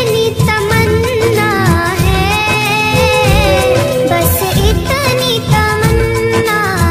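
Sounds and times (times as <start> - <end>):
bhajan ringtone: 0.2 - 6.8.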